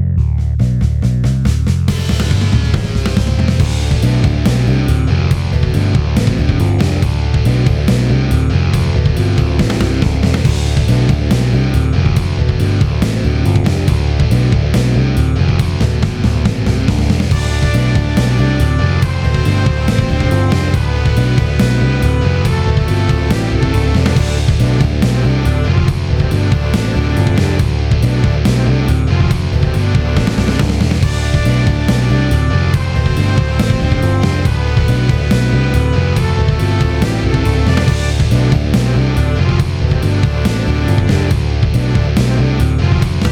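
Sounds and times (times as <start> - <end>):
trailer rock music: 0.2 - 43.3.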